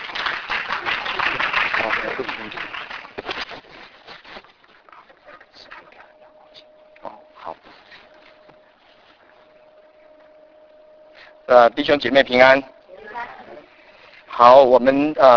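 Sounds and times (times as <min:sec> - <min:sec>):
audience applause welcoming speaker: 0:00.0 - 0:03.3
speech: 0:11.5 - 0:12.7, 0:14.4 - 0:15.3.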